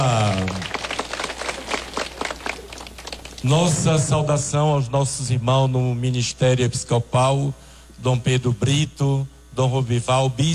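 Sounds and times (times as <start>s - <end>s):
audience clapping: 0.0s - 3.5s
speech: 3.4s - 10.5s.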